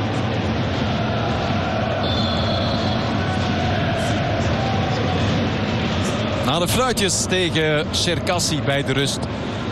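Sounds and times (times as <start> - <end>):
football fans singing and chanting in the stands: 0.0 - 6.9
speech: 6.6 - 9.6.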